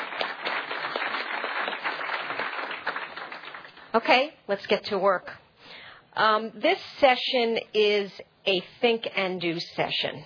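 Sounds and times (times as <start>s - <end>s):
audience applause: 0.0s - 3.9s
speech: 3.9s - 5.4s, 6.2s - 10.2s.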